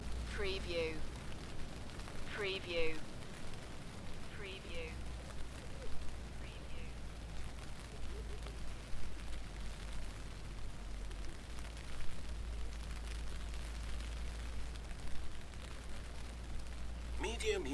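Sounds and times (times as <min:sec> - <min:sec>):
light rain: 0:00.0 - 0:17.7.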